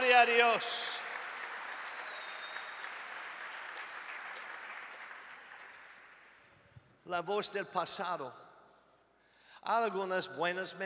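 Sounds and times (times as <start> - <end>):
audience applauding: 0.0 - 6.5
speech: 0.2 - 0.9, 7.1 - 8.4, 9.6 - 10.8.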